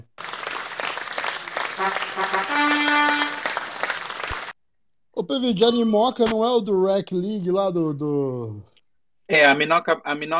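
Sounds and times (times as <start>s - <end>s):
round of applause: 0.0s - 4.6s
speech: 1.8s - 3.4s, 5.2s - 8.7s, 9.3s - 10.3s.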